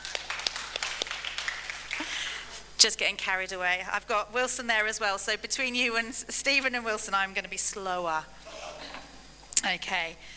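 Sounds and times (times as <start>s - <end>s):
scattered applause for a speaker at a talk: 0.0s - 2.5s
low hum: 0.0s - 10.3s
speech: 2.8s - 8.5s, 9.6s - 10.3s.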